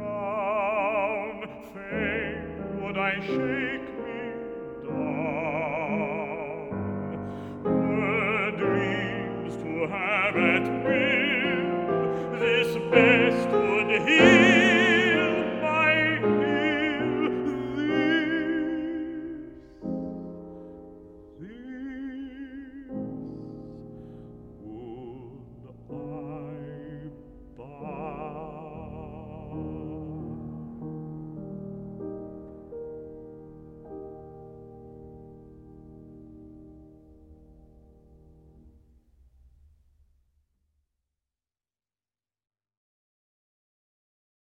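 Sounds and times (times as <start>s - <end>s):
person singing: 0.0s - 20.5s, 21.3s - 23.8s, 24.6s - 30.6s
piano: 0.0s - 40.2s.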